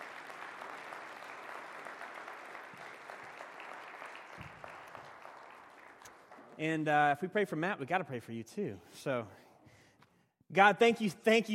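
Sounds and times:
audience applause: 0.0 - 6.9
speech: 6.6 - 9.4, 10.5 - 11.5.

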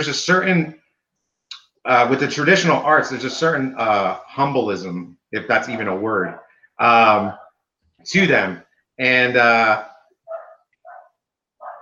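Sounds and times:
speech: 0.0 - 0.8, 1.8 - 7.4, 8.0 - 9.9
dog barking: 5.7 - 7.6, 10.3 - 11.8.

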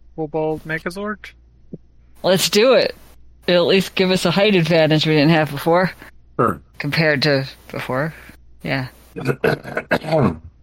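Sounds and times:
speech: 0.2 - 1.4, 2.2 - 10.5
throat clearing: 9.2 - 10.5.

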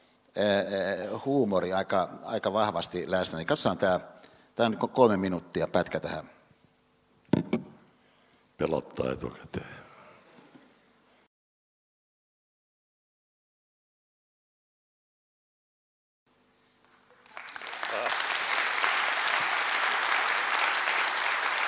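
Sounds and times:
speech: 0.4 - 6.4, 8.6 - 9.8
slow audience applause: 16.8 - 21.6.

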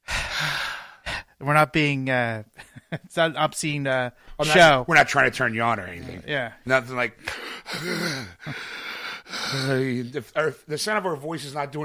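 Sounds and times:
groan-like gasp: 0.0 - 1.3, 7.3 - 9.8
heavy breathing from climbing steps: 0.0 - 1.4, 7.2 - 10.0
speech: 1.4 - 11.8.

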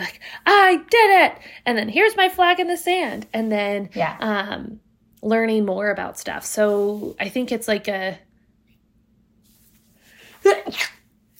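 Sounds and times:
speech: 0.0 - 8.3, 10.4 - 11.0
person sneezing: 10.3 - 11.1.

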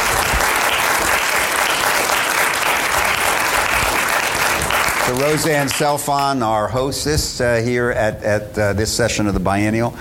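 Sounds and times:
audience applause: 0.0 - 6.0
speech: 5.1 - 9.9.

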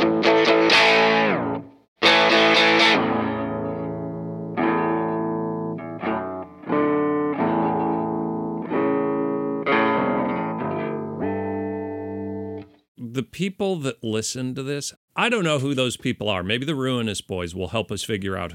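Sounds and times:
electric guitar through distortion and a whammy pedal: 0.0 - 12.8
speech: 13.3 - 18.5.

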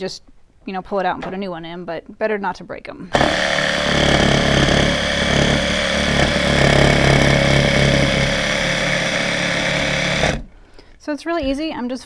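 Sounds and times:
speech: 0.0 - 4.4, 11.1 - 12.0
small power saw cutting through a gourd: 3.1 - 10.5.

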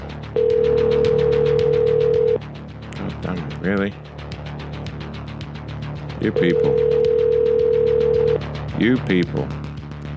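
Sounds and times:
unanswered telephone call ringing: 0.4 - 2.4, 6.4 - 8.4
speech: 3.7 - 4.1, 6.2 - 7.0, 8.8 - 9.6.

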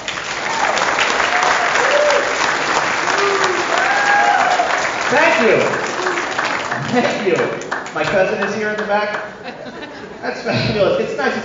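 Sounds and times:
audience applause: 0.0 - 10.2
faint whoops and voices: 1.3 - 2.3, 3.1 - 4.8
speech: 5.1 - 5.9, 6.9 - 11.4
laughter: 8.0 - 11.4.

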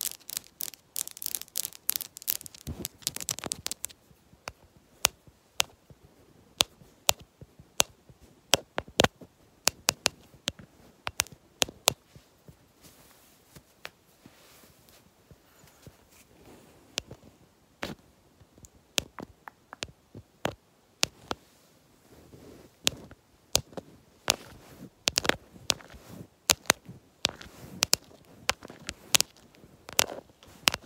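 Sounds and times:
long fingernails tapping rapidly on a lens: 0.0 - 6.0, 6.6 - 12.0, 17.8 - 21.4, 22.8 - 30.8.

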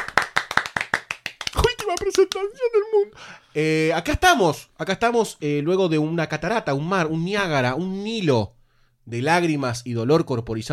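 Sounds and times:
applause: 0.0 - 2.4
speech: 1.9 - 10.7.

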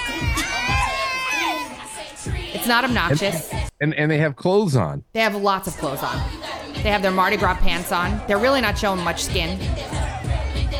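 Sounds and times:
people shouting: 0.0 - 2.4
crowd of girls singing and cheering: 0.0 - 3.7, 5.3 - 10.7
speech: 2.6 - 9.9.

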